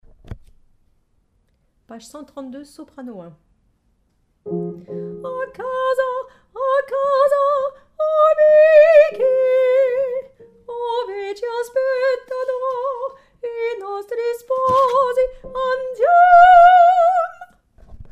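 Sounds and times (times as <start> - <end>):
soprano singing: 4.5 - 17.5.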